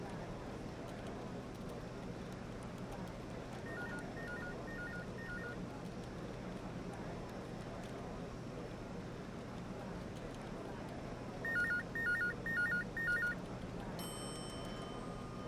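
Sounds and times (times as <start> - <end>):
light office walla: 0.1 - 13.9
office phones ringing: 3.7 - 5.6, 11.5 - 13.4
elevator bell in a building: 14.0 - 15.4.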